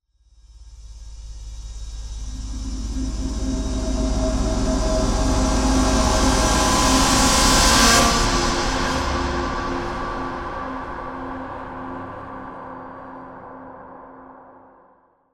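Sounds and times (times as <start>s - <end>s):
scary transition sound: 1.8s - 13.7s.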